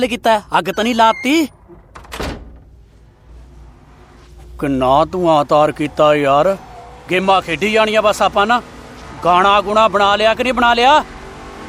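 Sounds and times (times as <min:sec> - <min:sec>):
speech: 0:00.0 - 0:01.6, 0:04.6 - 0:11.2
door opening thunk: 0:00.7 - 0:02.7.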